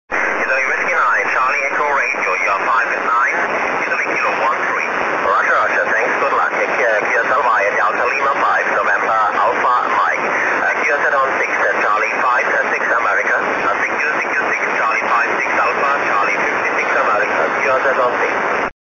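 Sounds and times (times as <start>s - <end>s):
6m single sideband radio: 0.1s - 18.8s.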